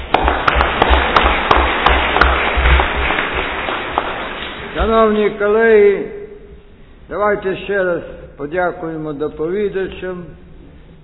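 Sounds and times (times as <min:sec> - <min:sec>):
audience applause: 0:00.0 - 0:04.9
speech: 0:04.8 - 0:06.2, 0:07.1 - 0:10.4.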